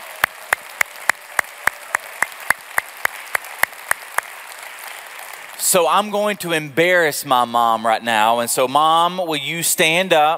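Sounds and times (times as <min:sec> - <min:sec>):
audience applause: 0:00.0 - 0:06.5
speech: 0:05.7 - 0:10.3.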